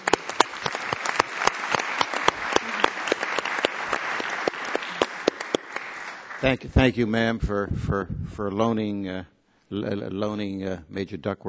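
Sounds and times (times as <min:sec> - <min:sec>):
audience applause: 0:00.0 - 0:06.9
speech: 0:06.4 - 0:11.4.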